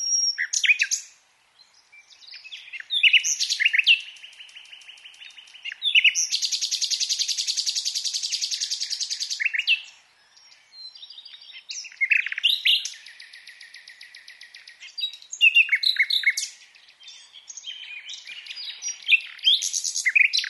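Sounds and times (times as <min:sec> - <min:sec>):
common nightingale song: 0:00.0 - 0:20.4.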